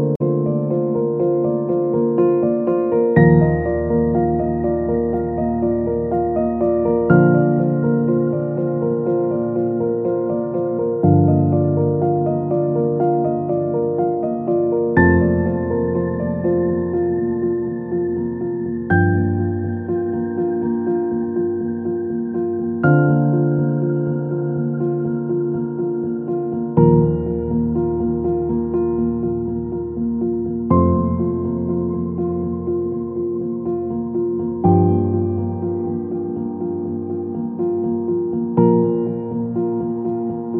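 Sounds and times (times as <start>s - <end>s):
calm piano music: 0.0s - 40.5s.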